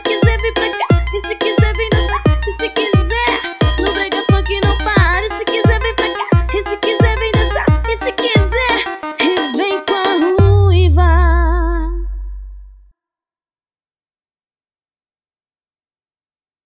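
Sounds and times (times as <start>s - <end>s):
brega funk music: 0.0s - 12.8s.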